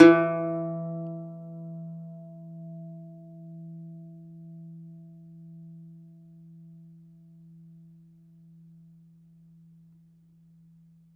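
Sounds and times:
domra plucked strings: 0.0s - 2.8s.

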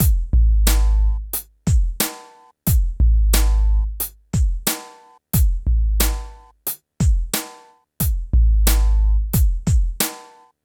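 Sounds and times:
phat beat: 0.0s - 10.4s.

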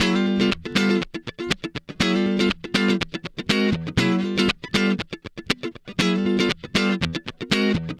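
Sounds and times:
guitar licks: 0.0s - 7.9s.

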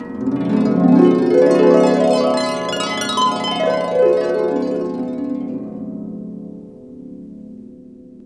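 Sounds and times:
harp glissando: 0.0s - 5.8s.

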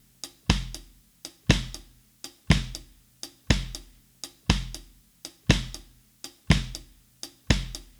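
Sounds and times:
70s analog funk drums: 0.0s - 7.9s.

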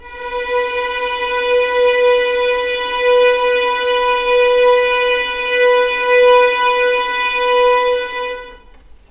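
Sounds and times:
violins playing legato: 0.0s - 9.0s.

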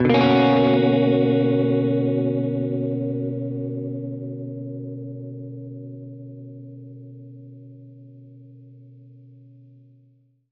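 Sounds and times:
Gretsch guitar playing a Bmin9 maj7 chord: 0.0s - 7.6s.

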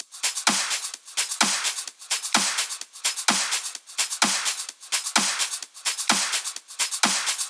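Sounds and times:
drum loops: 0.0s - 7.4s.

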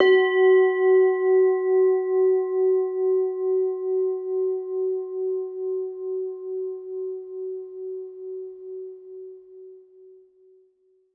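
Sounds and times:
mixed bells: 0.0s - 3.1s
singing bowls: 0.0s - 10.0s.

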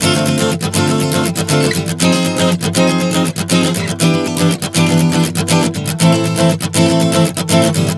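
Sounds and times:
acoustic guitar chord progressions at 120 bpm: 0.0s - 7.9s.

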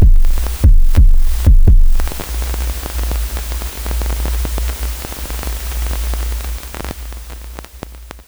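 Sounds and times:
kick drums: 0.0s - 2.3s
noise: 0.0s - 8.2s.

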